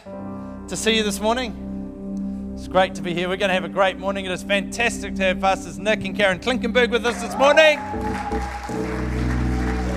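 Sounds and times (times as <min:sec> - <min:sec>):
speech: 0:00.0 - 0:01.7, 0:02.6 - 0:09.2
audience clapping: 0:07.4 - 0:09.9.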